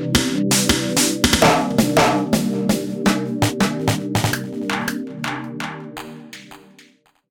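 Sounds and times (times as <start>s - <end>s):
snare drum: 0.2s - 6.9s.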